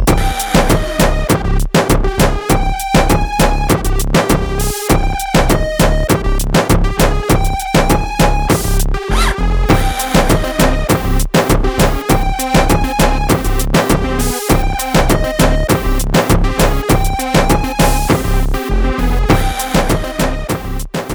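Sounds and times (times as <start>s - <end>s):
hip hop music: 0.1s - 21.1s.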